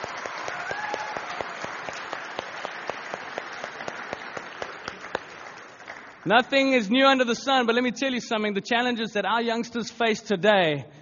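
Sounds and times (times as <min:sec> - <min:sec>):
audience round of applause: 0:00.0 - 0:06.8
speech: 0:06.3 - 0:10.9.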